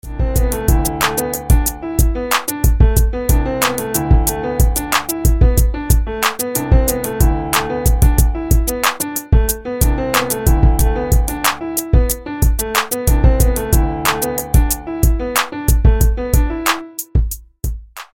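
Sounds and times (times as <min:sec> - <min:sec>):
dark hip hop ringtone: 0:00.1 - 0:16.6.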